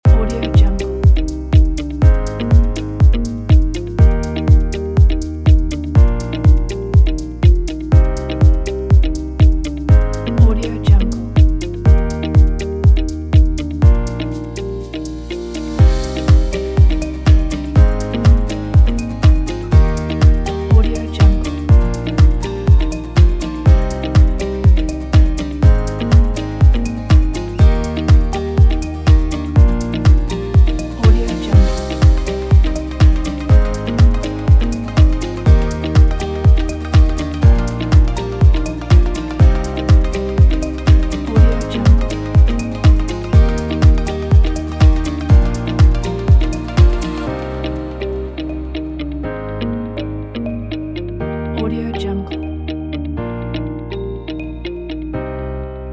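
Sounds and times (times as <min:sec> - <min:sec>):
emotional music: 0:00.2 - 0:55.9.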